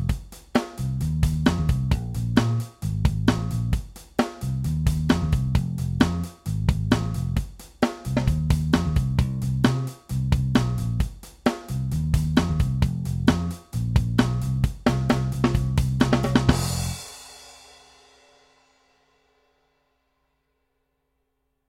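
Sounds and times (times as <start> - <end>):
rough funk groove backing track in F at 132 bpm: 1.0 - 3.8, 4.6 - 11.1, 11.9 - 17.0.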